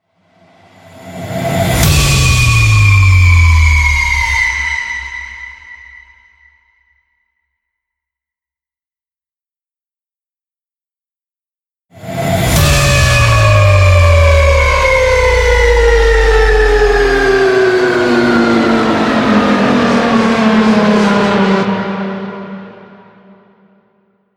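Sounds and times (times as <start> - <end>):
harrowed scream: 0.8 - 6.8, 12.0 - 23.6.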